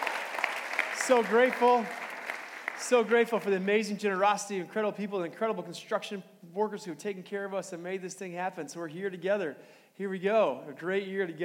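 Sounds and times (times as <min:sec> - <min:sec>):
audience cheering and applauding: 0:00.0 - 0:03.4
speech: 0:01.1 - 0:02.0, 0:02.8 - 0:11.4.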